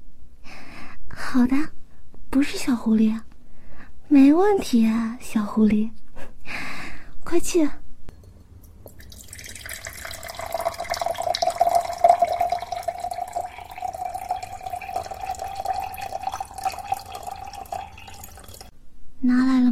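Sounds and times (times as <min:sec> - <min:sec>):
speech: 0:01.4 - 0:03.3, 0:04.1 - 0:06.0, 0:07.3 - 0:07.8
water pouring into a glass: 0:08.6 - 0:18.7.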